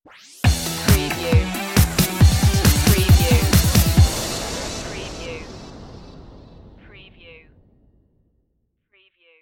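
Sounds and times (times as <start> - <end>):
digital cuts stinger: 1.2 - 8.3.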